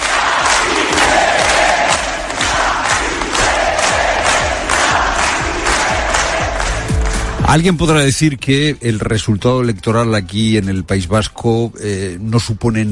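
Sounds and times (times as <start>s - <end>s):
crowd shouting for independence: 0.0s - 6.8s
speech: 7.5s - 12.9s.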